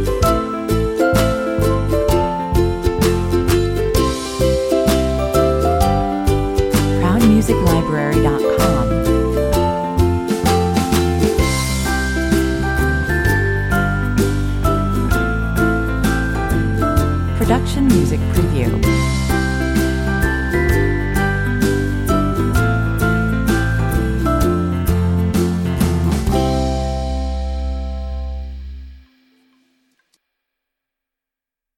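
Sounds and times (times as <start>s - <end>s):
easygoing commercial music: 0.0s - 29.6s.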